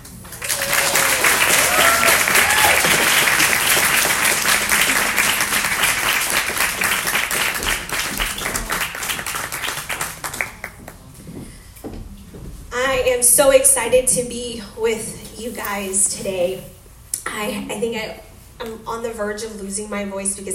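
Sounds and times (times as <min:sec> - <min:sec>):
audience applause: 0:00.0 - 0:11.1
speech: 0:13.6 - 0:16.7, 0:17.4 - 0:20.5.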